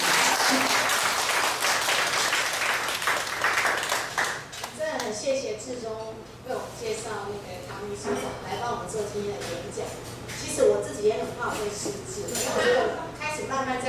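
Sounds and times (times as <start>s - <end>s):
audience applause: 0.0s - 4.5s
speech: 5.7s - 13.8s.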